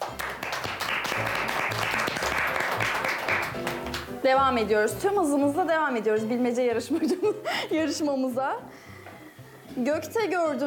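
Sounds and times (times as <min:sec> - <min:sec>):
audience applause: 0:00.0 - 0:04.1
speech: 0:04.2 - 0:08.8, 0:09.8 - 0:10.6.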